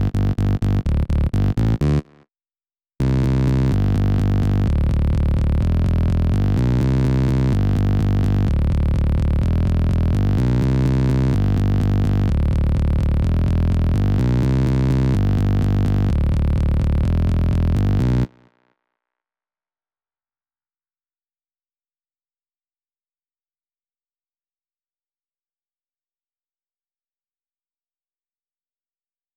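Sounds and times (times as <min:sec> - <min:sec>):
bass: 0:00.0 - 0:02.2, 0:03.0 - 0:18.4.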